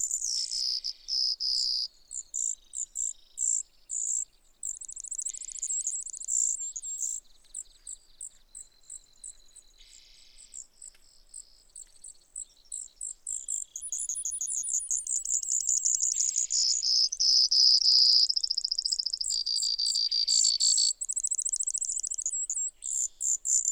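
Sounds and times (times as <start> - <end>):
Brewer's sparrow trilling song: 0.0 - 23.7.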